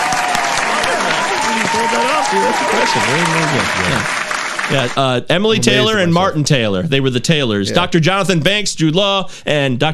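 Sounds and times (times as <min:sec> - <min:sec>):
applause: 0:00.0 - 0:05.0
speech: 0:02.0 - 0:09.9.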